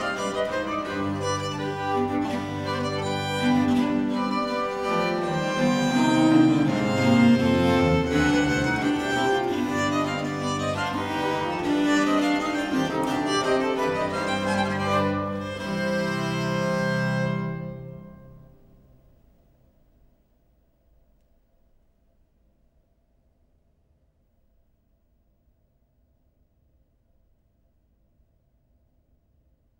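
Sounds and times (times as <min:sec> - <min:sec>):
five-part viol consort playing an air in C minor: 0:00.0 - 0:18.6.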